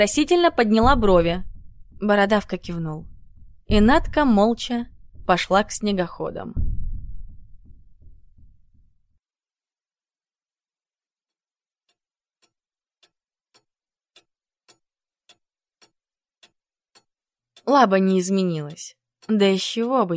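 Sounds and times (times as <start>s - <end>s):
speech: 0.0s - 3.1s, 3.7s - 6.7s, 17.7s - 20.1s
wall clock ticking in a laboratory office: 0.0s - 8.8s, 11.9s - 20.1s
low rumbling noise: 0.0s - 8.9s.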